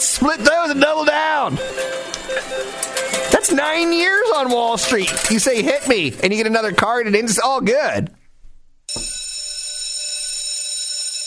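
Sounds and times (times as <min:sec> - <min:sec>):
fire drill alarm ringing: 0:00.0 - 0:06.1, 0:08.9 - 0:11.2
speech: 0:00.2 - 0:08.2.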